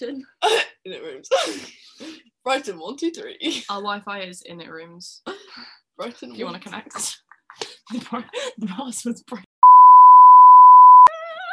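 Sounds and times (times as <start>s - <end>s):
speech: 0.0s - 1.8s, 2.4s - 9.5s
censor beep over password: 9.6s - 11.1s.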